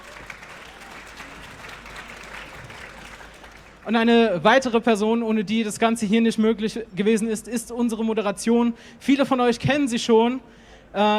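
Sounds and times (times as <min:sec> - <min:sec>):
audience applause: 0:00.0 - 0:03.9
speech: 0:03.9 - 0:11.1.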